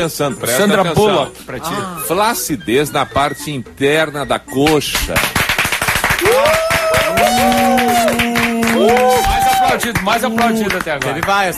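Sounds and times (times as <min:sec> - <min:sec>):
speech: 0:00.0 - 0:05.4, 0:08.8 - 0:11.5
applause: 0:04.7 - 0:11.5.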